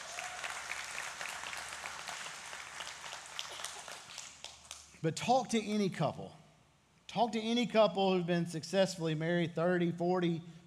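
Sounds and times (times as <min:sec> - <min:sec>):
audience clapping for a couple's wedding anniversary: 0:00.0 - 0:05.0
speech: 0:05.0 - 0:06.4, 0:07.1 - 0:10.6.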